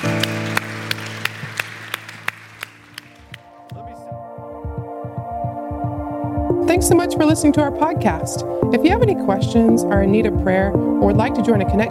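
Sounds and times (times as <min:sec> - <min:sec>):
round of applause: 0:00.0 - 0:03.9
speech: 0:06.7 - 0:11.8.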